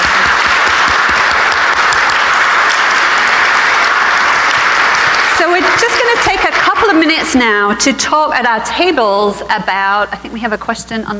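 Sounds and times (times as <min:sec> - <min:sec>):
audience clapping: 0:00.0 - 0:07.3
speech: 0:05.5 - 0:11.1.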